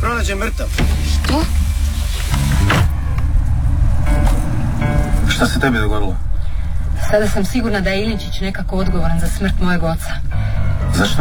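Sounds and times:
car rumbling: 0.0s - 11.1s
speech: 0.2s - 2.8s, 5.4s - 6.3s, 7.0s - 10.4s, 11.0s - 11.1s
mechanical whir and creak: 0.8s - 4.9s.

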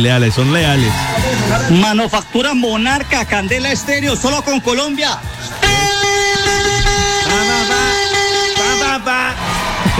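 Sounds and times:
speech: 0.0s - 6.6s
vuvuzela horn blowing: 5.5s - 9.1s.

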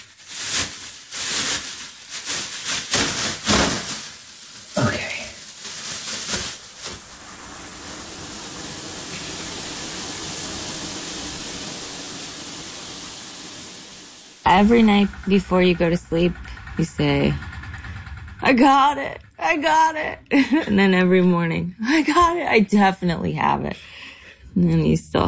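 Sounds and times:
shower running: 0.0s - 20.6s
speech: 14.5s - 17.5s, 18.5s - 24.0s, 24.6s - 25.2s
clatter: 14.7s - 19.4s.

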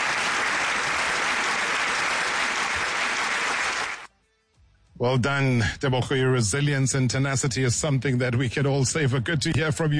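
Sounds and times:
crowd applauding: 0.0s - 4.1s
speech: 5.0s - 9.9s.

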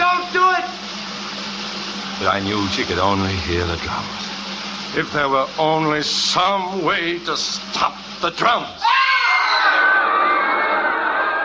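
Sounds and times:
speech: 2.2s - 4.3s, 4.9s - 9.1s
huge crowd roaring in terror, shouting and screaming: 8.8s - 11.4s.

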